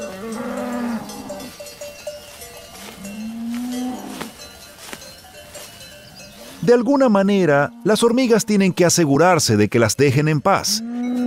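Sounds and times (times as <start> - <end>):
cattle mooing on mountain pasture: 0.0 - 1.6, 3.0 - 4.4, 7.3 - 8.8, 10.6 - 11.2
cowbells clanking: 0.0 - 9.2, 10.3 - 11.2
speech: 6.6 - 10.9.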